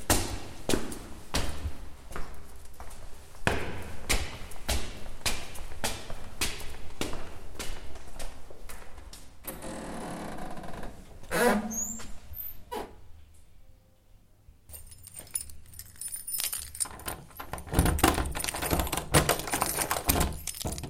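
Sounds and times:
footsteps climbing stairs: 0.0 - 10.9, 16.8 - 20.8.

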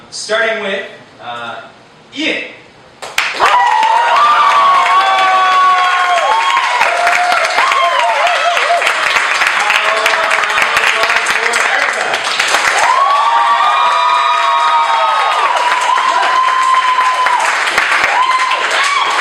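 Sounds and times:
audience applause: 3.1 - 19.2.

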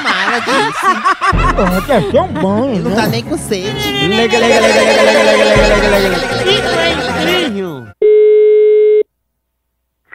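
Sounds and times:
laughter: 0.0 - 7.8
speech: 0.4 - 8.0
telephone busy signal after a dropped call: 8.0 - 9.0.

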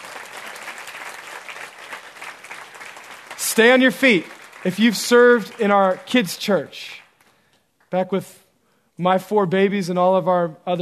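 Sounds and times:
audience clapping hands: 0.0 - 8.1
speech: 3.6 - 7.0, 7.9 - 8.4, 9.0 - 10.8.

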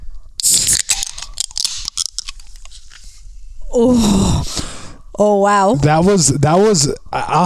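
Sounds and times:
vocal sound: 0.4 - 2.1, 3.7 - 4.8
two cans of Bud Light Platinum Seltzer cracked open: 0.4 - 3.0
speech: 3.8 - 4.5, 5.2 - 7.4.

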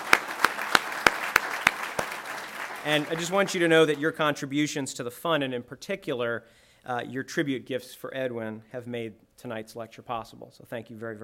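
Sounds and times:
audience applause: 0.0 - 4.1
speech: 2.8 - 11.2.

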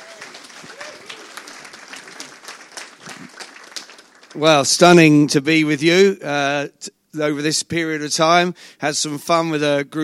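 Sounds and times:
audience applause: 0.0 - 4.7
speech: 4.4 - 10.0.

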